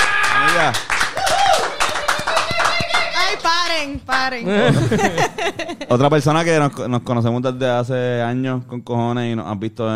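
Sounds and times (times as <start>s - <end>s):
whooping and cheering voices: 0.0s - 3.4s
audience applause: 0.0s - 3.6s
speech: 0.6s - 0.8s, 4.1s - 9.9s
laughter: 4.4s - 6.2s.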